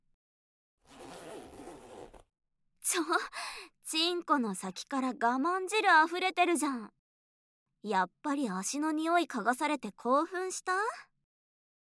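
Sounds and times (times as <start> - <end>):
trouser zipper being pulled down: 0.8 - 2.3
speech: 2.9 - 7.0, 7.8 - 11.1.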